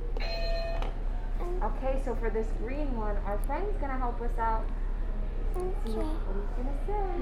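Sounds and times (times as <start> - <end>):
buzzer: 0.2 - 0.9
speech: 1.8 - 4.8, 5.5 - 7.2.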